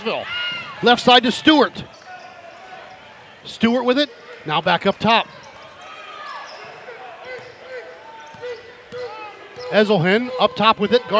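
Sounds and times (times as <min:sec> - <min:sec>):
speech: 0:00.0 - 0:01.9, 0:03.4 - 0:05.4, 0:09.7 - 0:11.1
noise: 0:00.0 - 0:11.1
basketball dribbled on a hardwood court: 0:06.6 - 0:11.1.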